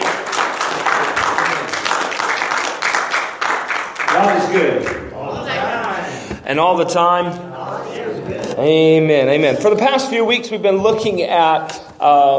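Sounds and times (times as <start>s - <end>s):
crowd clapping in applause: 0.0s - 5.3s
speech: 4.2s - 5.0s, 6.5s - 7.6s, 8.6s - 12.3s.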